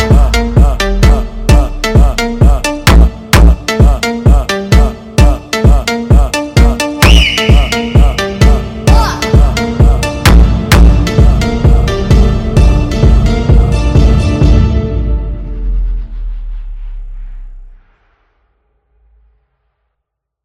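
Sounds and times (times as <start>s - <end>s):
Brazilian funk music: 0.0s - 15.9s.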